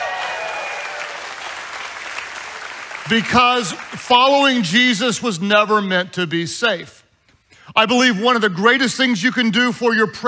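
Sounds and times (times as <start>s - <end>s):
audience cheering: 0.0s - 4.0s
speech: 3.1s - 7.0s, 7.8s - 10.2s.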